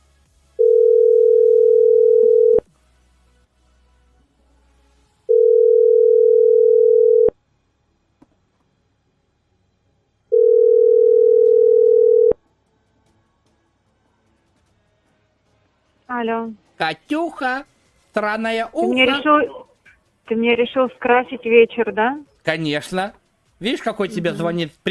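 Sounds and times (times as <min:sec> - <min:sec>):
ringing tone of an outgoing WhatsApp call: 0:00.6 - 0:02.7, 0:05.3 - 0:07.4, 0:10.3 - 0:12.4
speech: 0:16.2 - 0:19.6, 0:20.3 - 0:24.9.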